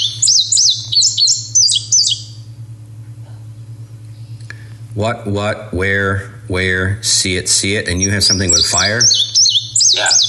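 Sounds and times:
Indigo Bunting song: 0.0 - 2.5, 7.7 - 10.2
faint low hum: 0.0 - 10.2
speech: 5.0 - 9.3.

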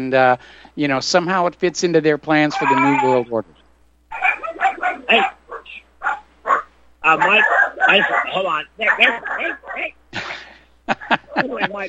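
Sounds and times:
speech: 0.0 - 4.2, 5.1 - 5.4, 7.1 - 10.4, 11.1 - 11.8
dogs barking excitedly: 2.6 - 3.2, 4.1 - 9.9
laughter: 10.2 - 11.8.

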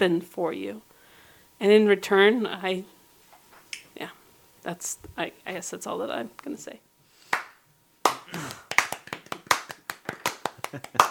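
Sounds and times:
speech: 0.0 - 0.9, 1.6 - 3.0, 4.0 - 6.9, 10.7 - 11.0
hand clapping: 7.3 - 11.0.

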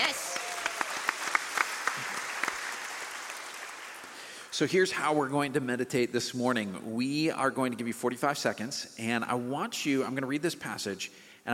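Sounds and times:
audience applause: 0.0 - 4.5
speech: 4.6 - 11.5.

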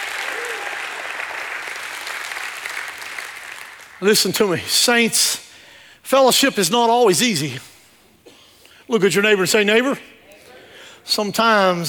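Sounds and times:
audience hand clapping: 0.0 - 4.0
speech: 4.0 - 5.4, 6.0 - 7.7, 8.9 - 10.1, 11.1 - 11.8.

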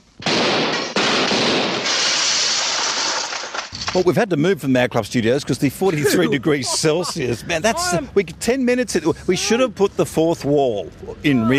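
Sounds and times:
gunshots: 0.2 - 3.3
speech: 3.9 - 11.5
laughter: 5.6 - 8.3.

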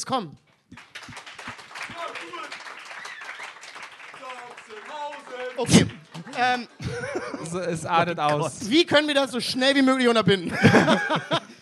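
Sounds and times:
speech: 0.0 - 1.2, 4.2 - 11.4
audience clapping: 0.6 - 7.3
laughter: 5.4 - 8.0, 10.4 - 11.6.

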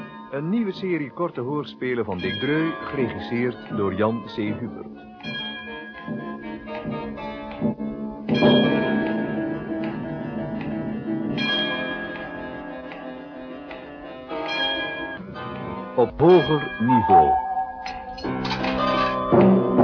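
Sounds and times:
clock bell striking thirteen: 0.0 - 3.5, 5.2 - 7.2, 8.3 - 10.7, 11.3 - 13.2, 14.3 - 19.8
speech: 0.3 - 5.4, 16.0 - 17.4.

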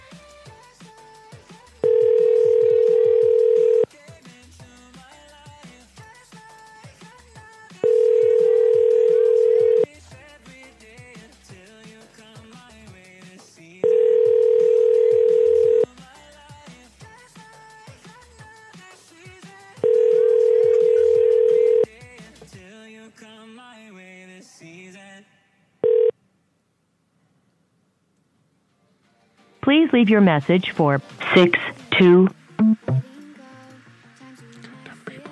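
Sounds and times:
telephone ringing tone on a call to an old cell phone number: 1.8 - 3.9, 7.8 - 9.9, 13.8 - 15.9, 19.8 - 21.9, 25.8 - 26.1
speech: 30.0 - 32.4.

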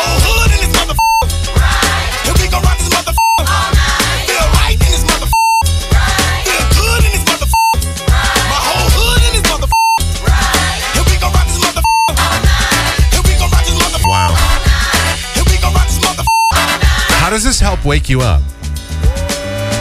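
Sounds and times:
song with lyrics: 0.0 - 19.7
censorship bleeps over song lyrics: 0.8 - 1.3, 3.1 - 3.6, 5.2 - 5.7, 7.5 - 7.8, 9.7 - 10.0, 11.8 - 12.2, 14.0 - 14.5, 16.2 - 16.7
speech: 17.6 - 18.5.

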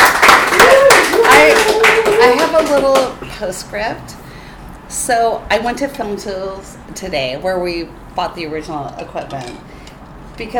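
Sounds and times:
people cheering and whooping: 0.0 - 2.6
audience applause: 0.0 - 3.1
speech: 2.2 - 4.2, 4.9 - 9.7, 10.4 - 10.5.

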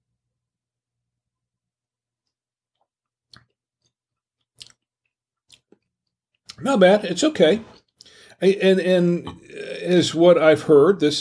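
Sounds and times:
person chewing grilled chicken: 2.2 - 6.6, 7.8 - 8.2
speech: 6.6 - 7.8, 8.4 - 11.1.

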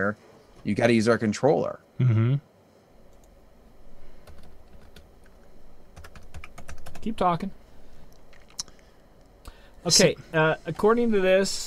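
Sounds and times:
speech: 0.0 - 2.5, 7.0 - 7.6, 9.8 - 11.6
typing on a computer keyboard while searching: 4.2 - 7.3.

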